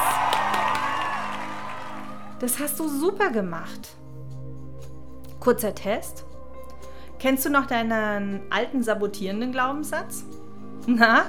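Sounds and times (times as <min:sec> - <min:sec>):
applause: 0:00.0 - 0:02.4
speech: 0:02.4 - 0:04.0, 0:05.4 - 0:06.3, 0:07.2 - 0:11.2.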